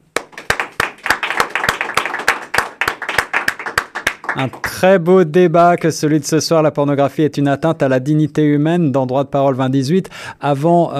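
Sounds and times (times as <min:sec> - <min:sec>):
audience applause: 0:00.2 - 0:04.8
speech: 0:04.4 - 0:10.9.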